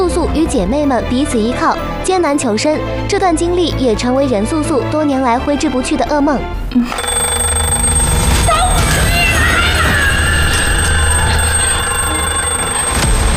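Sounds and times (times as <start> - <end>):
speech: 0.4 - 7.2
alarm clock ringing: 6.9 - 13.3.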